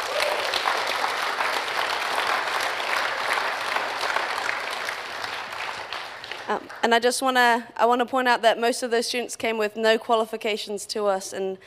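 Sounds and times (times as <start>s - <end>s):
audience applause: 0.0s - 6.9s
speech: 6.5s - 11.6s.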